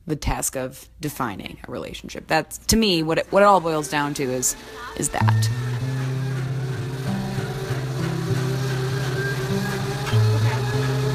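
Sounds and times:
speech: 0.1 - 6.4
kitchen blender running: 3.0 - 11.1.

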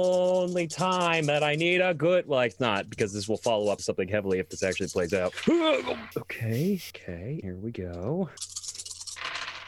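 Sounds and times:
speech: 0.0 - 8.7
dice rattling in a cup: 8.4 - 9.6.

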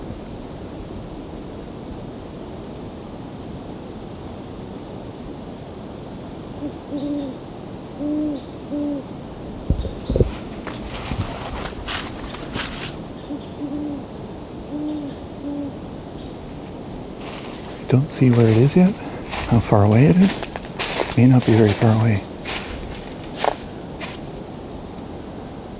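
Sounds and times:
steady outdoor noise: 0.0 - 25.7
great horned owl hooting: 6.6 - 7.4, 8.0 - 9.1, 12.0 - 24.8
footsteps crunching and rustling: 9.7 - 13.2, 16.4 - 25.0
speech: 17.9 - 20.5, 21.2 - 22.3.

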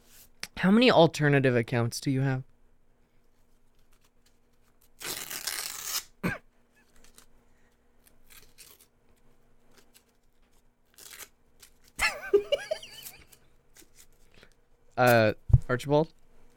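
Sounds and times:
speech: 0.6 - 2.5, 15.0 - 16.2
paper document being ripped apart: 3.8 - 6.1, 6.8 - 7.3, 8.1 - 12.0
laughter: 12.0 - 13.1.

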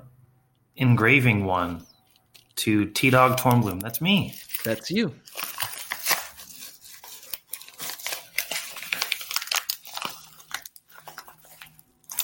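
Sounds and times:
speech: 0.8 - 1.9, 2.6 - 5.4
present wrapping crinkling and being torn open: 2.0 - 12.2.

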